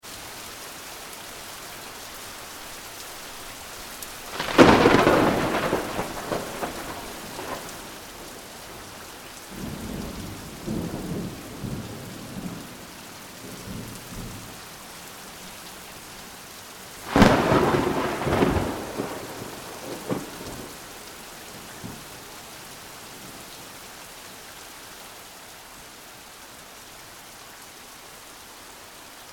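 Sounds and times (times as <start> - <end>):
rain: 0.0 - 29.3.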